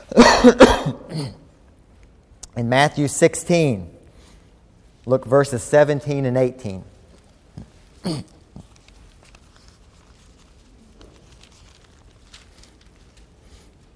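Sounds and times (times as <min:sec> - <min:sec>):
speech: 0:00.1 - 0:01.3, 0:02.6 - 0:04.0, 0:05.0 - 0:06.9, 0:07.6 - 0:08.3
Bible pages turning: 0:06.9 - 0:13.9.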